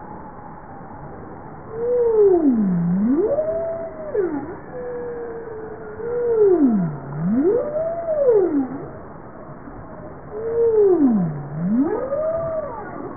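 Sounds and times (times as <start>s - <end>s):
bowhead whale calls: 1.7s - 9.0s, 10.2s - 13.1s.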